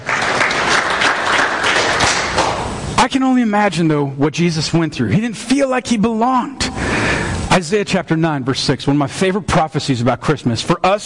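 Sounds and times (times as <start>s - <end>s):
audience clapping: 0.0s - 2.8s
speech: 3.0s - 6.6s, 7.6s - 11.0s.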